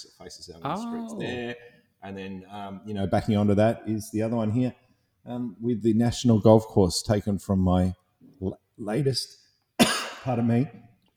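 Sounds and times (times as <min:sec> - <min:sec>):
speech: 0:00.0 - 0:10.8
person coughing with a lingering cough after COVID: 0:09.8 - 0:10.4.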